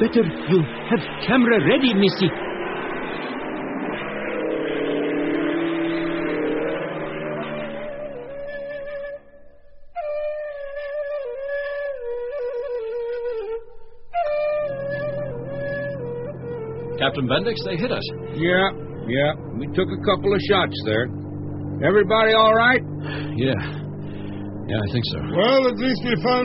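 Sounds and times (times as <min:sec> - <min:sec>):
speech: 0:00.0 - 0:02.5, 0:17.2 - 0:21.2, 0:21.8 - 0:23.8, 0:24.7 - 0:26.4
airplane engine roaring overhead: 0:00.0 - 0:26.4.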